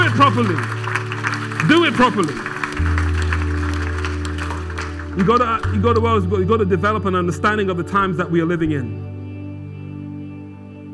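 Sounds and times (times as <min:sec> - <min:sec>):
audience clapping: 0:00.0 - 0:06.4
speech: 0:00.2 - 0:00.8, 0:01.7 - 0:02.5, 0:05.2 - 0:09.1.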